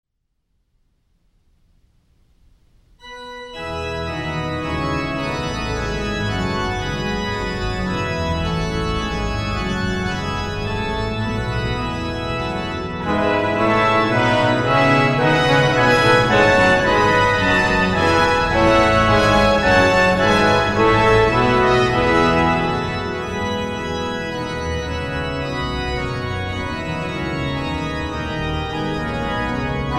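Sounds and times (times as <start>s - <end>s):
brass prelude in E major: 3.0s - 29.9s.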